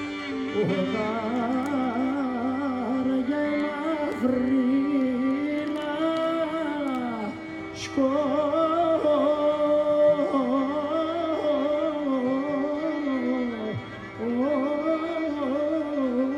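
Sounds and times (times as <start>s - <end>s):
Sunday park concert music in Athens: 0.0s - 16.3s.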